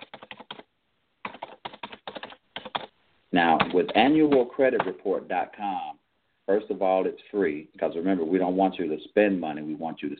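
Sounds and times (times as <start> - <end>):
typing on a computer keyboard: 0.0 - 2.9, 3.5 - 5.0
speech: 3.4 - 10.1.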